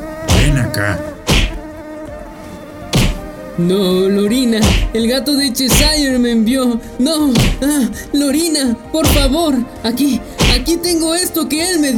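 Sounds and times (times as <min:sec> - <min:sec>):
insect buzzing: 0:00.0 - 0:11.9
sharp swats at an insect: 0:00.3 - 0:00.6, 0:01.2 - 0:01.6, 0:02.9 - 0:03.3, 0:04.6 - 0:05.0, 0:05.7 - 0:06.1, 0:07.3 - 0:07.7, 0:09.0 - 0:09.4, 0:10.4 - 0:10.7
speech: 0:00.5 - 0:01.2, 0:03.6 - 0:11.9.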